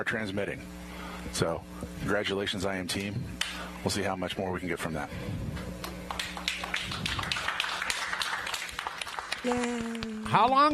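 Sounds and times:
speech: 0.0s - 5.7s, 9.4s - 10.7s
polite scattered applause from a modest crowd: 6.1s - 10.7s.

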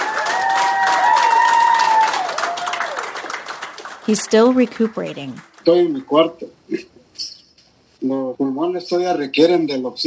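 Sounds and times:
hospital nurses and staff applauding a recovered patient: 0.0s - 6.2s
speech: 4.1s - 7.3s, 8.0s - 10.0s.

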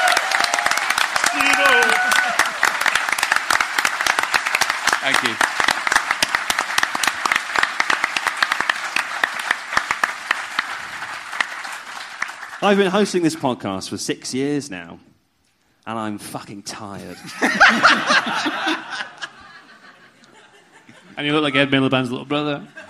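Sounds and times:
audience applause: 0.0s - 13.1s
speech: 5.1s - 5.5s, 12.6s - 15.1s, 15.9s - 18.9s, 21.2s - 22.8s
laughter: 17.0s - 21.8s, 22.6s - 22.8s.

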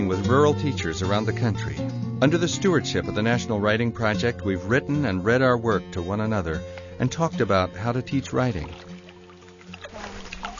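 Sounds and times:
speech: 0.2s - 8.9s
river water flowing: 8.2s - 10.5s.

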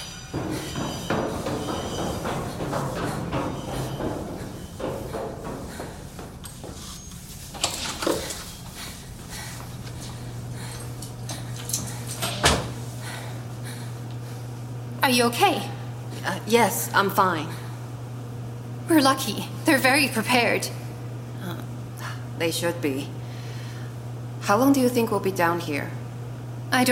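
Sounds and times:
heavy door opening and closing: 0.0s - 8.8s, 9.9s - 12.9s
speech: 15.1s - 17.6s, 18.9s - 20.8s, 22.4s - 23.2s, 24.5s - 26.0s, 26.7s - 26.9s.

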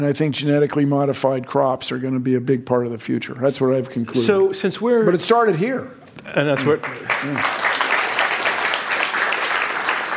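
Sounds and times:
speech: 0.0s - 7.6s
audience applause: 6.6s - 10.1s.

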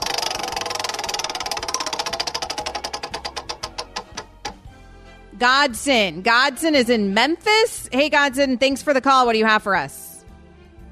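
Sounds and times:
prize wheel spinning: 0.0s - 4.5s
speech: 5.4s - 10.0s.

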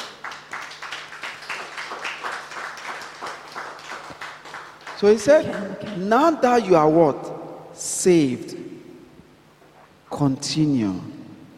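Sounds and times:
audience clapping hands: 0.0s - 6.1s
speech: 5.0s - 7.3s, 8.0s - 8.6s, 10.2s - 11.2s.

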